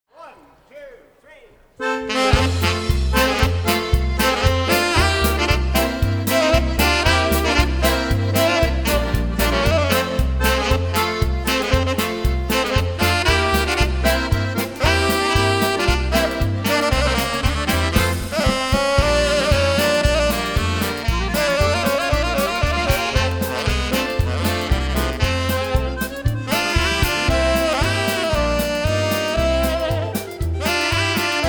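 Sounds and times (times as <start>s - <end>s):
polka music: 1.8s - 31.4s.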